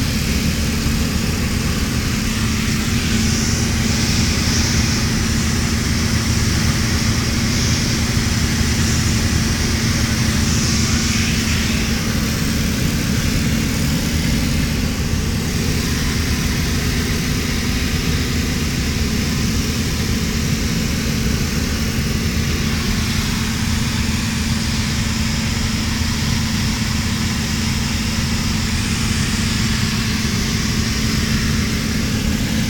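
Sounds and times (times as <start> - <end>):
Piper PA34 engines droning during landing in Port-au-Prince Haiti: 0.0 - 32.6.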